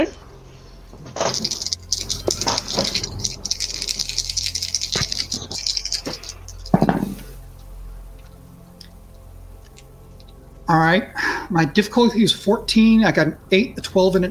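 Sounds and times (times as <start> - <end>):
speech: 0.0 - 0.2, 1.3 - 1.7, 10.7 - 14.2
dice rattling and clattering: 1.2 - 7.3.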